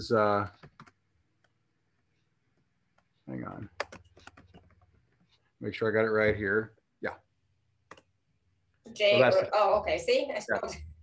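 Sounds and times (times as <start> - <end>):
speech: 0.0 - 0.6, 5.6 - 7.2, 8.9 - 11.0
computer keyboard keystrokes: 0.6 - 1.6, 3.7 - 4.9.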